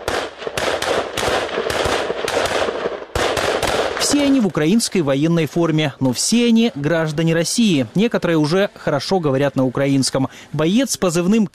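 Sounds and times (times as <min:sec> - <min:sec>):
automatic rifle fire during assault training: 0:00.0 - 0:04.5
speech: 0:04.1 - 0:11.5.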